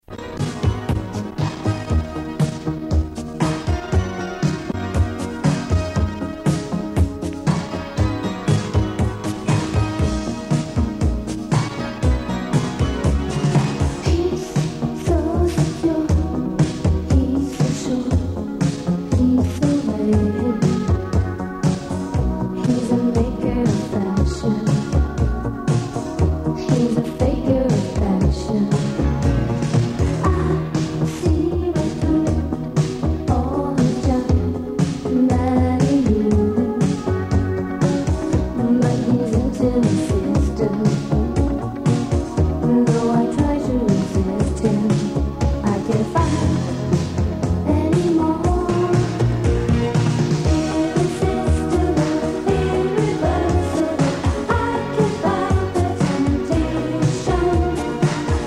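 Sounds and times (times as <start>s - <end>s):
instrumental music: 0.0s - 58.4s.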